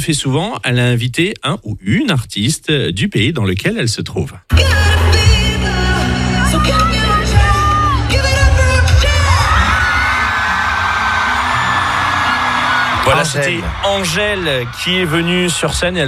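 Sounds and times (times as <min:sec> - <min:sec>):
speech: 0:00.0 - 0:04.8, 0:13.1 - 0:16.0
concert crowd cheering: 0:04.5 - 0:16.0
whoops and high shouts: 0:06.4 - 0:14.3.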